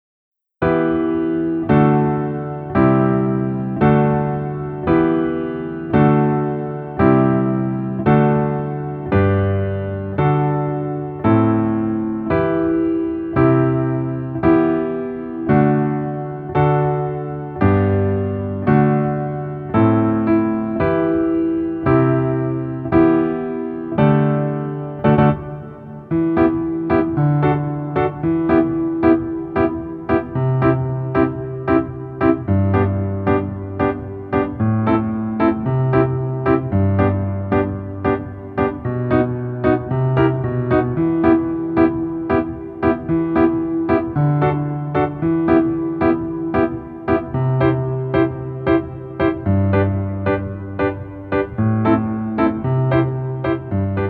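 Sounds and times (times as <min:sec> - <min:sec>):
piano music: 0:00.6 - 0:54.0.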